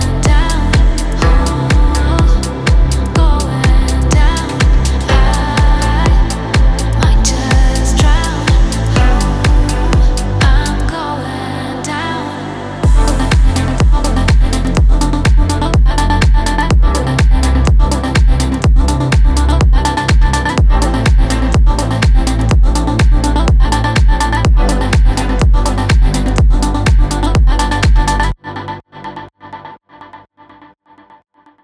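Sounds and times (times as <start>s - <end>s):
sad stutter house music: 0.0s - 10.9s, 12.6s - 28.7s.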